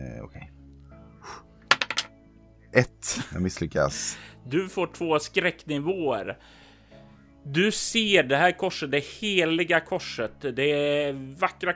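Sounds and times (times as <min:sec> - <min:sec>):
die clattering across a hard surface: 0:01.7 - 0:02.1
speech: 0:02.8 - 0:06.6, 0:07.4 - 0:11.7.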